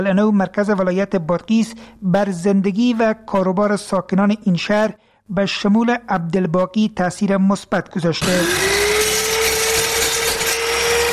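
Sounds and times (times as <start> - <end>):
speech: 0.0 - 8.7
electric woodworking machine cutting wood in a carpentry shop in Qala-i-Naw, Badghis: 8.2 - 11.1.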